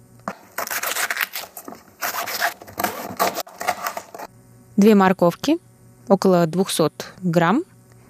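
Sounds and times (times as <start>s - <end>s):
Chinese cabbage leaves pulled apart by hand: 0.5s - 4.3s
speech: 4.8s - 7.7s.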